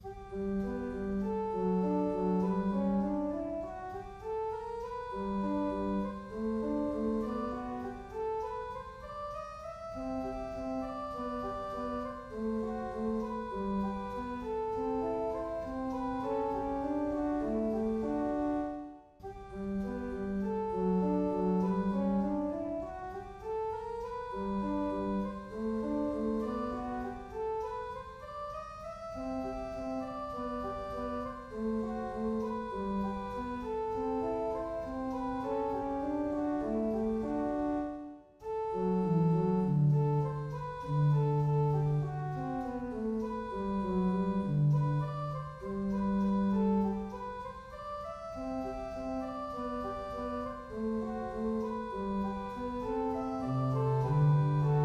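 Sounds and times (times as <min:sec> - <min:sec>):
organ music: 0:00.0 - 0:54.8.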